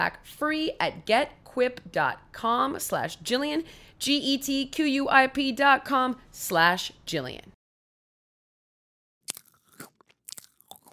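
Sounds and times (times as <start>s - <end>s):
speech: 0.0s - 7.6s
chewing: 9.3s - 10.9s.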